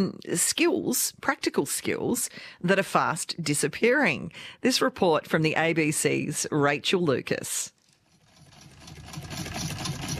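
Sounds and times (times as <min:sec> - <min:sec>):
speech: 0:00.0 - 0:07.8
very old hand-cranked sewing machine running: 0:07.8 - 0:10.1.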